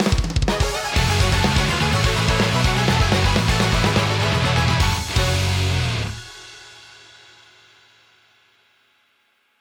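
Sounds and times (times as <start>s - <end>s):
win jingle: 0.5s - 6.9s.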